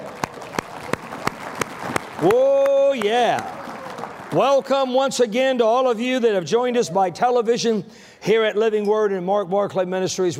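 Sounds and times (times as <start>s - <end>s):
audience clapping in unison: 0.0s - 5.4s
speech: 2.2s - 3.6s, 4.3s - 10.3s.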